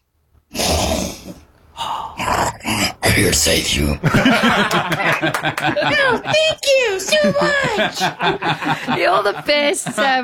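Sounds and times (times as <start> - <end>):
voice imitating a tiger growl and roar: 0.5 - 3.1
speech: 3.0 - 10.2
laughter: 4.0 - 10.2.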